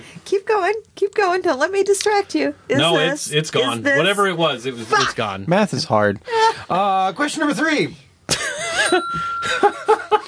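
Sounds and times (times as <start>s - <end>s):
speech: 0.3s - 10.2s
chuckling: 8.3s - 10.2s
bell ringing: 8.7s - 10.2s.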